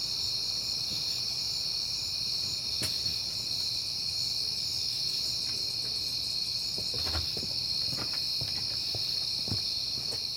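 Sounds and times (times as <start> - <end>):
crickets trilling: 0.0 - 10.3.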